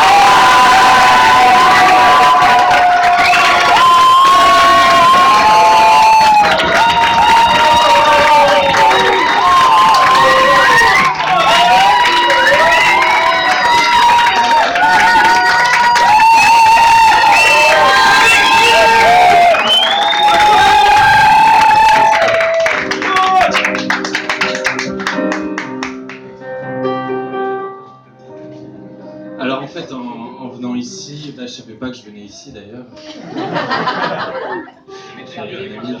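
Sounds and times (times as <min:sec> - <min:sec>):
audience applause: 0:00.0 - 0:26.2
laughter: 0:33.0 - 0:34.9.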